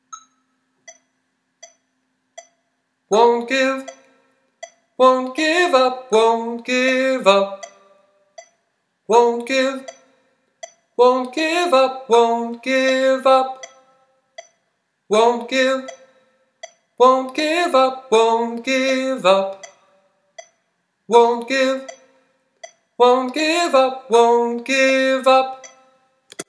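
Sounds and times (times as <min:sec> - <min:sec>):
tenor singing: 0:03.1 - 0:04.1, 0:05.0 - 0:08.1, 0:09.1 - 0:10.1, 0:11.0 - 0:14.0, 0:15.1 - 0:16.1, 0:17.0 - 0:20.1, 0:21.1 - 0:22.2, 0:23.0 - 0:26.0.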